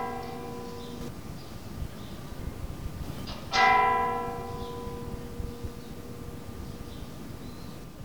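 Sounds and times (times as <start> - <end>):
church bells ringing for the Rosary: 0.0 - 1.2, 3.3 - 7.9.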